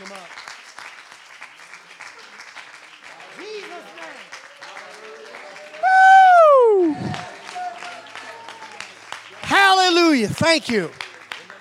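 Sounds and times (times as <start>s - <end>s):
audience clapping: 0.0s - 11.5s
speech: 10.2s - 11.0s.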